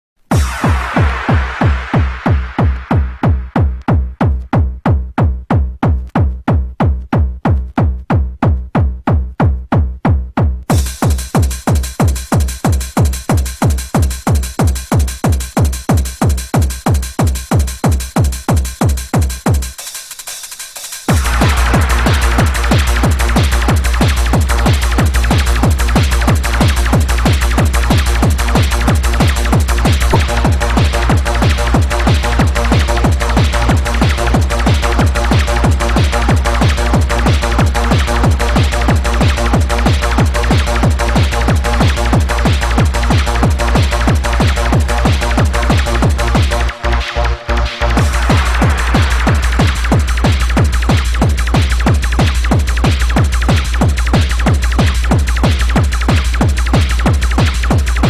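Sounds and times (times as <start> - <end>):
happy hardcore remix: 0.2 - 58.0.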